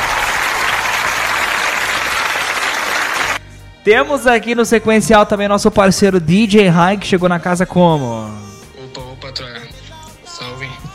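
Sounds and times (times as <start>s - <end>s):
audience applause: 0.0s - 3.4s
speech: 3.9s - 8.5s, 9.3s - 9.6s.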